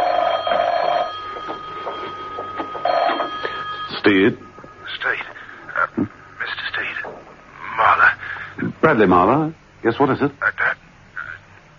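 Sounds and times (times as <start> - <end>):
telephone ringing: 0.0 - 7.3
speech: 4.0 - 5.2, 8.8 - 10.5.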